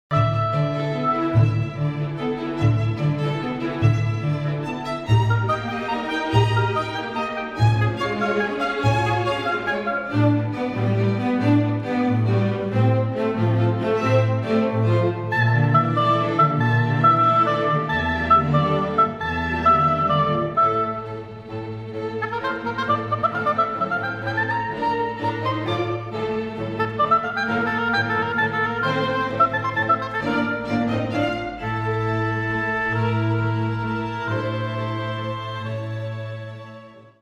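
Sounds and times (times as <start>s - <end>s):
oboe: 0.1s - 2.0s, 4.8s - 10.5s, 15.2s - 21.5s, 22.1s - 37.2s
string orchestra: 0.1s - 37.2s.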